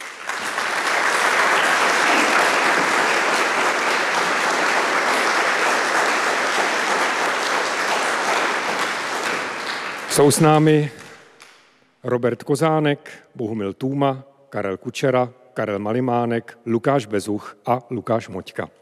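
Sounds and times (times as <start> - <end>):
audience applause welcoming band: 0.0 - 11.3
speech: 10.2 - 11.0, 12.0 - 18.7.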